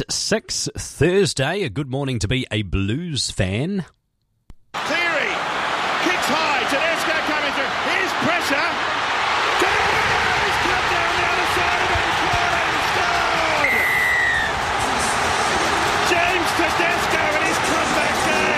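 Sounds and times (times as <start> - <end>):
speech: 0.0 - 4.0
stadium crowd cheering wildly: 4.7 - 18.5.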